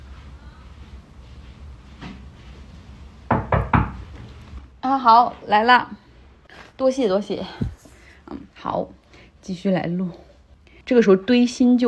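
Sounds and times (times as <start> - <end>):
knocking on a door: 3.3 - 4.0
speech: 4.9 - 6.0, 6.8 - 7.7, 8.6 - 10.2, 10.9 - 11.8.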